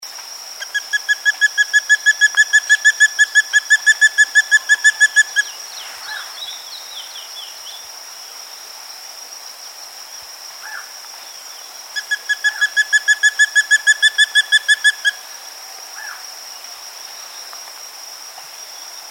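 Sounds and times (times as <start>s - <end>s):
spot-breasted woodpecker calling: 0.7s - 5.5s, 12.0s - 15.2s.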